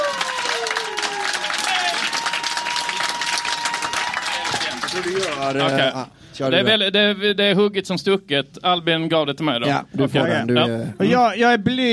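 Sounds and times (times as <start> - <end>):
crowd clapping: 0.0 - 6.0
speech: 5.0 - 11.9.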